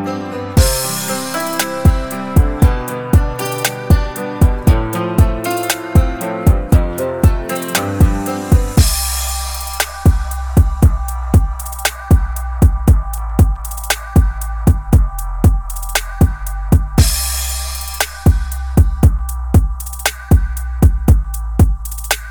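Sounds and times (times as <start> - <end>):
man singing mainstream rap hooks: 0.6 - 22.1.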